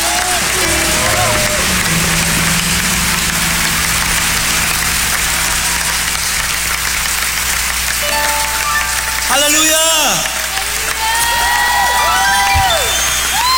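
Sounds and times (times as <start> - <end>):
church congregation applauding loudly for the Lord: 0.0 - 13.5.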